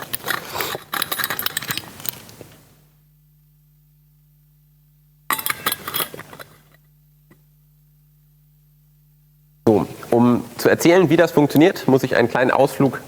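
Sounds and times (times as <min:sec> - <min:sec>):
drinking glass clinking as a speaker takes a sip: 0:05.3 - 0:06.7
speech: 0:10.7 - 0:13.0.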